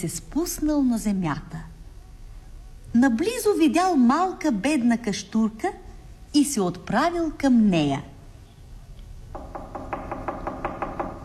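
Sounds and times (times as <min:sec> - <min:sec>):
speech: 0:00.0 - 0:01.7, 0:02.9 - 0:08.1
knocking on a wooden door: 0:09.3 - 0:11.2.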